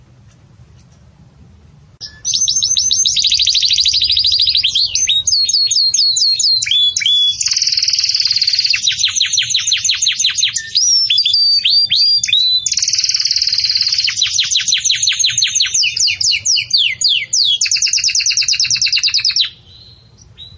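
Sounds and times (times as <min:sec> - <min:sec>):
canary song: 0:02.0 - 0:20.5.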